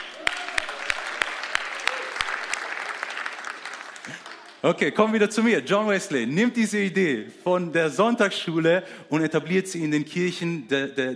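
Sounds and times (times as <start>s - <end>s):
audience applause: 0.0s - 5.2s
speech: 4.1s - 11.1s.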